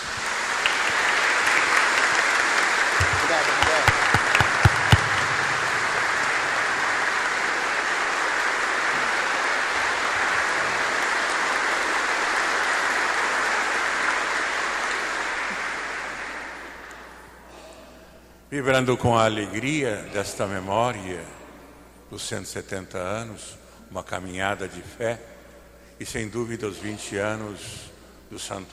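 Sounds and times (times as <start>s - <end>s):
large crowd applauding in a reverberant space: 0.0s - 17.3s
speech: 18.6s - 21.4s, 22.1s - 25.3s, 26.0s - 28.7s.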